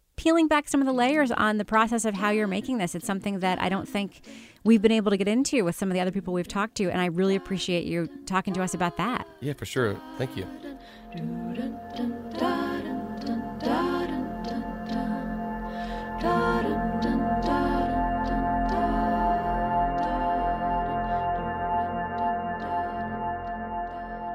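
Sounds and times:
speech: 0:00.2 - 0:12.1
podcast theme song music: 0:07.2 - 0:24.3.

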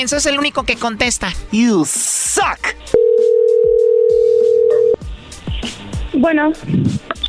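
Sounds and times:
speech: 0:00.0 - 0:03.0, 0:06.2 - 0:07.1
telephone tone while a number is called again: 0:03.0 - 0:05.0.

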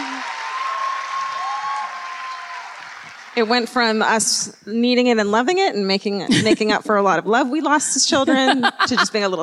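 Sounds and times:
audience clapping: 0:00.0 - 0:04.4
speech: 0:03.4 - 0:09.4
laughter: 0:08.2 - 0:09.4.

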